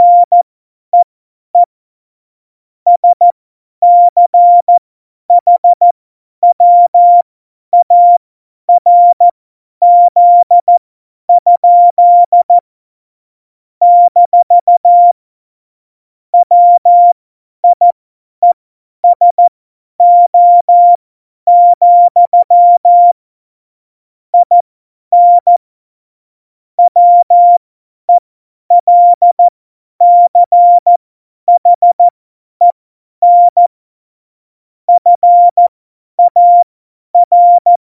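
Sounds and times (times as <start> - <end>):
CW Morse code beeps: 0.0 - 0.4, 2.9 - 3.2, 3.8 - 4.7, 5.4 - 7.2, 7.8 - 8.2, 8.8 - 10.7, 11.4 - 12.6, 13.8 - 15.2, 16.4 - 23.2, 24.4 - 25.6, 26.8 - 27.6, 28.7 - 33.7, 34.9 - 37.8.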